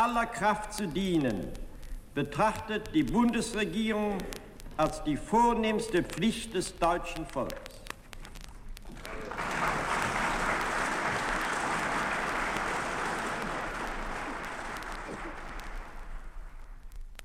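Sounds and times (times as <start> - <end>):
speech: 0.0 - 7.8
applause in parliament from the democratic parties: 8.9 - 16.8.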